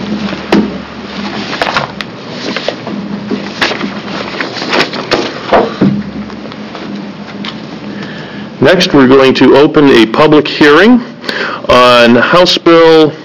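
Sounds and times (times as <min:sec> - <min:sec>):
shuffling papers: 0:00.1 - 0:05.8
speech: 0:08.7 - 0:12.8.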